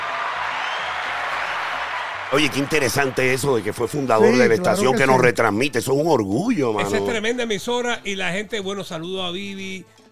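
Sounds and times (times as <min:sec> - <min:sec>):
applause: 0:00.0 - 0:04.0
speech: 0:02.3 - 0:10.0.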